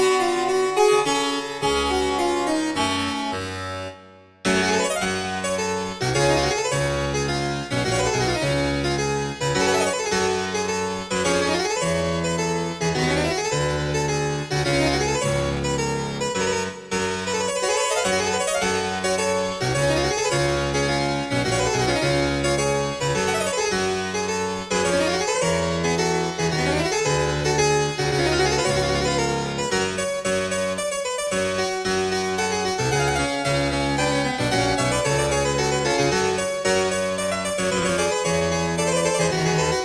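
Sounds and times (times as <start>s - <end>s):
harpsichord piece in G: 0.0s - 39.8s.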